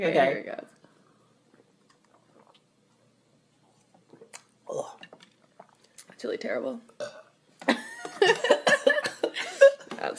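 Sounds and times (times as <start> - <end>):
speech: 0.0 - 0.8, 6.2 - 8.8
burp: 7.0 - 7.4.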